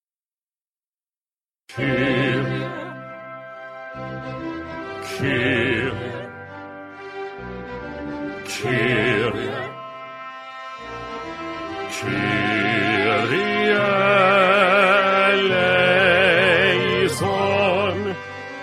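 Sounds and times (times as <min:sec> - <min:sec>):
choral singing of a kyrie: 0:01.7 - 0:03.3, 0:04.9 - 0:06.6, 0:08.0 - 0:18.6.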